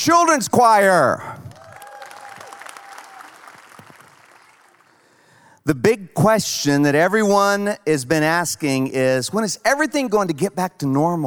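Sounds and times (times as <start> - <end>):
speech: 0.0 - 1.4, 5.6 - 11.2
faint cheers or voices: 1.4 - 3.6
sustained applause from a large crowd: 1.5 - 5.0.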